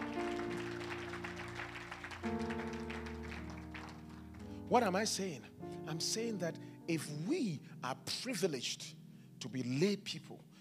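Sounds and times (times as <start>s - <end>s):
audience clapping: 0.0s - 4.6s
speech: 2.2s - 2.7s, 4.7s - 10.5s.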